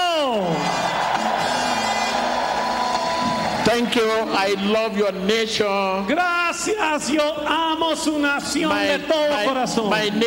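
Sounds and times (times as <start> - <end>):
audience shouting with joy: 0.0 - 5.0
speech: 3.8 - 10.2.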